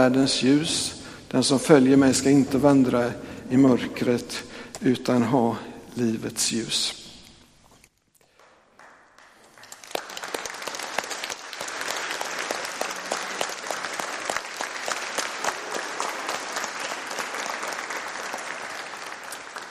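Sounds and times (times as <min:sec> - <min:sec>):
speech: 0:00.0 - 0:07.0
audience applauding in welcome: 0:08.4 - 0:19.7.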